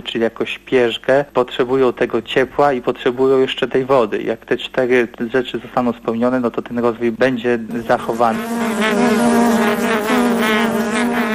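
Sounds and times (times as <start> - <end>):
speech: 0.1 - 10.2
honeybees buzzing: 7.7 - 11.3.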